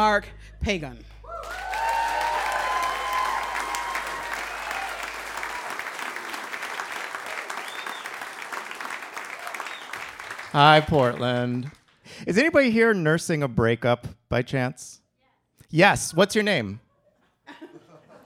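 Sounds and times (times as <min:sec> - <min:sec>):
speech: 0:00.0 - 0:01.6, 0:10.5 - 0:15.0, 0:15.7 - 0:16.8
audience applause: 0:01.3 - 0:12.0.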